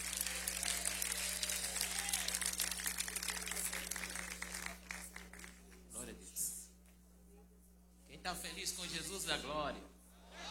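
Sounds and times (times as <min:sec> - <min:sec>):
audience applauding: 0:00.0 - 0:05.6
speech: 0:08.2 - 0:09.9.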